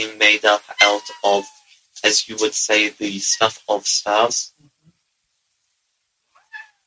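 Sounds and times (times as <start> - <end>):
speech: 0.0 - 4.6
cat meowing to be let out: 0.7 - 1.7, 6.4 - 6.8.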